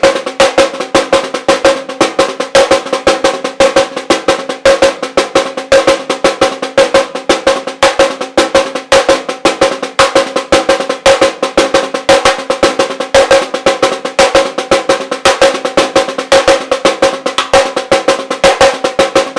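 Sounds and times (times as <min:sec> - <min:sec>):
batucada caixa snare drums: 0:00.0 - 0:19.3.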